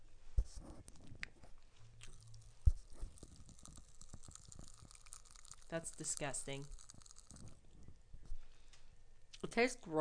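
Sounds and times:
soft chewing: 0.5 - 9.4
Pop Rocks candy crackling while being eaten: 2.0 - 8.0
speech: 5.7 - 6.8, 9.6 - 9.9.

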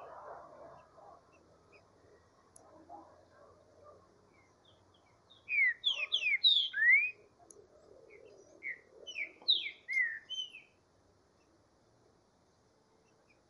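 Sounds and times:
green-winged saltator song: 4.4 - 7.2, 8.1 - 10.7.

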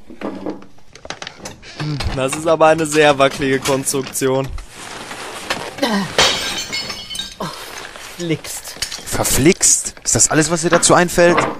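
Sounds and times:
speech: 0.1 - 0.6, 1.8 - 4.6, 5.8 - 6.2, 8.2 - 11.5
ceramic vase falling from a shelf and shattering: 4.6 - 9.4
tinkling ceramic shards settling: 5.9 - 9.8.

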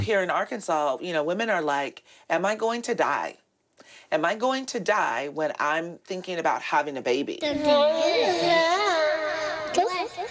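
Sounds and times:
speech: 0.0 - 8.8
2-year-old boy whining and fussing: 7.6 - 10.2.

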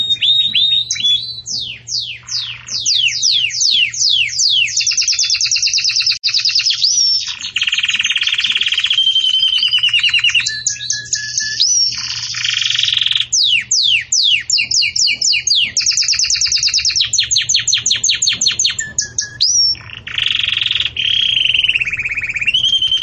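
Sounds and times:
Belgian canary song: 0.0 - 23.0.

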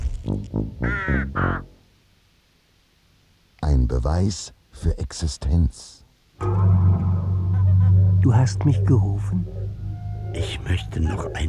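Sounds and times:
raven cawing: 0.8 - 1.8, 6.4 - 11.4
speech: 3.9 - 7.0, 8.2 - 9.6, 10.3 - 11.4.

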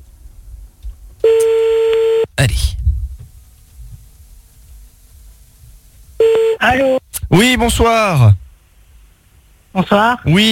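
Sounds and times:
telephone line tone for a radio prank call: 1.2 - 2.3, 6.2 - 6.8
speech: 2.4 - 2.8, 6.6 - 8.4, 9.8 - 10.5.

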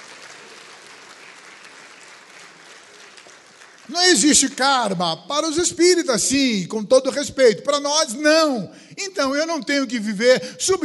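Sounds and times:
congregation applause at a Methodist cathedral church service: 0.0 - 5.6
speech: 3.9 - 10.8.

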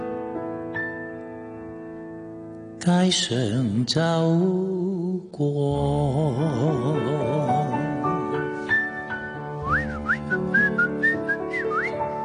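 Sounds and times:
musical accompaniment: 0.0 - 3.6, 5.6 - 12.2
speech: 2.8 - 7.8
person whistling a tune while walking along the street: 9.6 - 12.2.

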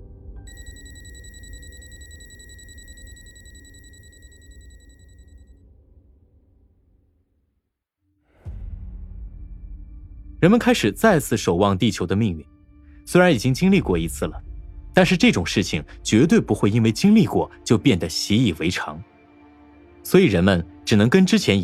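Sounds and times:
meteorite warning alarm device beeping: 0.5 - 5.3
speech: 10.4 - 14.4, 15.0 - 19.1, 20.0 - 21.6.

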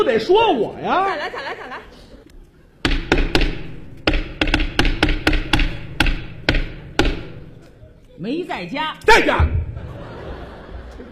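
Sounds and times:
speech: 0.0 - 1.9, 8.2 - 9.6
laughter: 1.0 - 2.8, 9.4 - 11.1
knocking on a door: 2.8 - 7.5.

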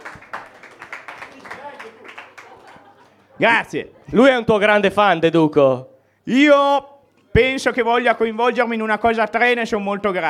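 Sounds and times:
audience applause: 0.0 - 3.3
laughter: 0.8 - 4.2
speech: 3.4 - 10.2.

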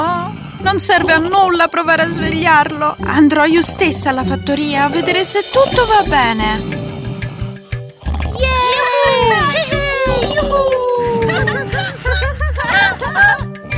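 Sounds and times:
speech: 0.7 - 6.9
children making noise in the house: 8.4 - 12.2
laughter: 8.7 - 13.7.

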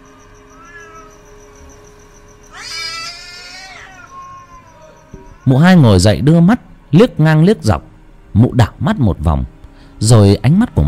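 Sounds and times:
cat meowing: 0.0 - 1.4, 2.5 - 5.5
speech: 5.5 - 10.8.

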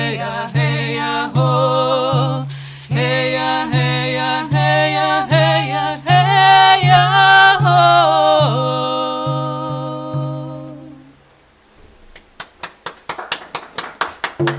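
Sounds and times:
person singing a long note: 1.3 - 11.2
studio audience clapping at a radio station: 12.1 - 14.5.

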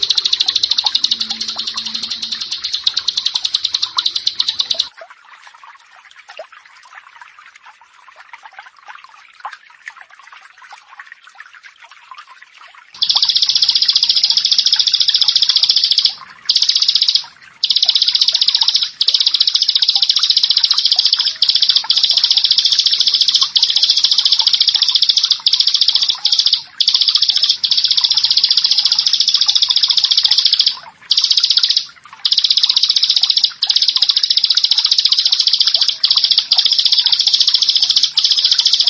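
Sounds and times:
bar-winged prinia buzzy trill: 0.0 - 4.9, 13.0 - 38.8.

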